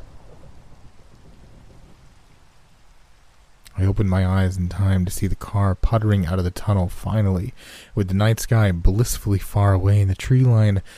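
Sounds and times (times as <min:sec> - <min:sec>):
thunder rumbling: 0:00.0 - 0:05.9
steady rain: 0:00.0 - 0:10.9
speech: 0:03.8 - 0:10.9.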